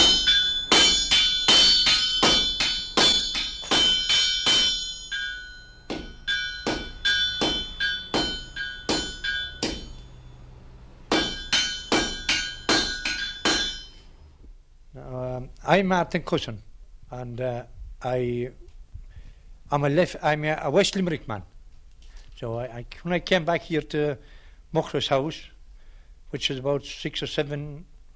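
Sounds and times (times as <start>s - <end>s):
sledgehammer drawing out iron on anvil: 0.0s - 10.3s, 11.1s - 14.1s
speech: 15.7s - 18.6s, 19.7s - 21.5s, 22.4s - 25.5s, 26.3s - 28.1s.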